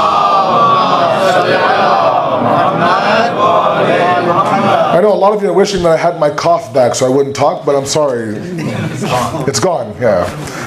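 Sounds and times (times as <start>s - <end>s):
large crowd chanting salawat in unison: 0.0s - 5.1s
speech: 5.2s - 10.6s.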